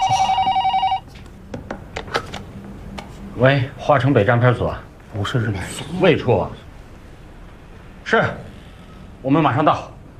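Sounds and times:
telephone ringing: 0:00.0 - 0:01.1
speech: 0:03.4 - 0:06.6, 0:08.1 - 0:08.5, 0:09.2 - 0:09.9.

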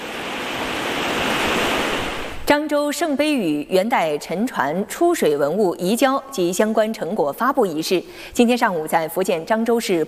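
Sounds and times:
tidal water and waves surging at Tashan Dam: 0:00.0 - 0:02.5
speech: 0:02.5 - 0:10.0.

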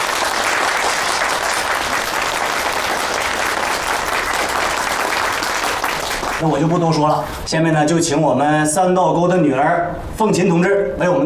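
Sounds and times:
warm audience applause: 0:00.0 - 0:06.4
speech: 0:06.4 - 0:11.2.

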